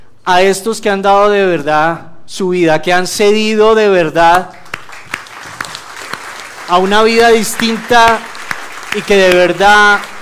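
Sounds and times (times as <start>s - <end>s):
speech: 0.3s - 4.6s, 6.7s - 8.3s, 8.9s - 10.1s
audience applause: 4.5s - 10.1s.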